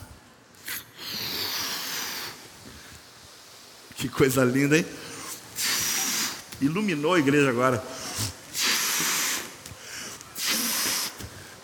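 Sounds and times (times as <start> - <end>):
balloon being inflated: 0.6 - 3.1, 5.1 - 6.6, 7.9 - 11.5
speech: 4.0 - 5.1, 6.6 - 8.4.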